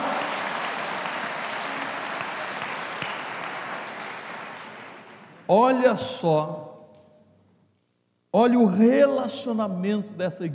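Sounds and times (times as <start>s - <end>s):
audience applause: 0.0s - 5.5s
speech: 5.5s - 6.7s, 8.4s - 10.5s.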